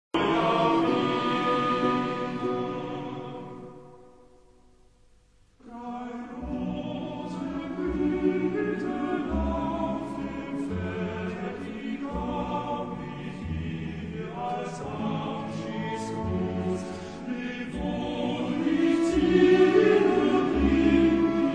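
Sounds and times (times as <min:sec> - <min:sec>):
choir singing: 0:00.2 - 0:04.4, 0:05.6 - 0:21.5.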